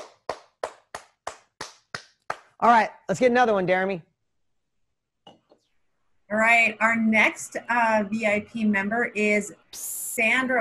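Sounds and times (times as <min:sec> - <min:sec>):
hands clapping to applaud a group member: 0:00.0 - 0:02.8
speech: 0:02.6 - 0:04.1, 0:06.3 - 0:10.6.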